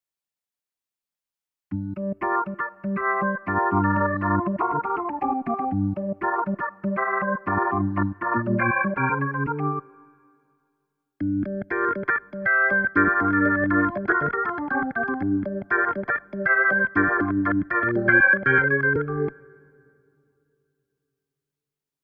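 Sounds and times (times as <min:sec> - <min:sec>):
organ: 0:01.7 - 0:10.1, 0:11.2 - 0:19.7.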